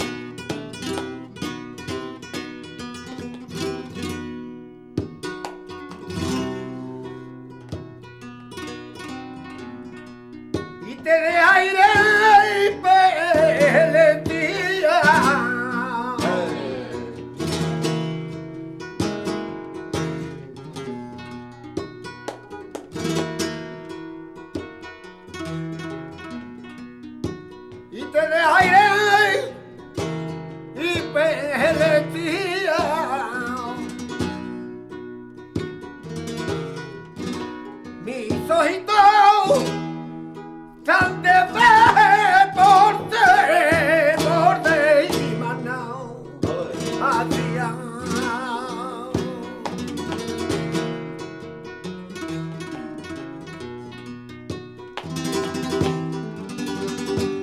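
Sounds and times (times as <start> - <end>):
solea flamenco music: 0.0 - 57.4.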